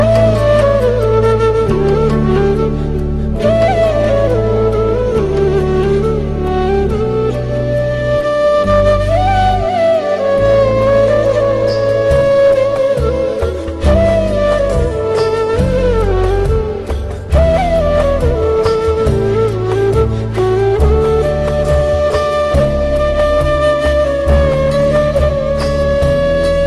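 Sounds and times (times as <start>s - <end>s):
flute: 0.0s - 26.6s.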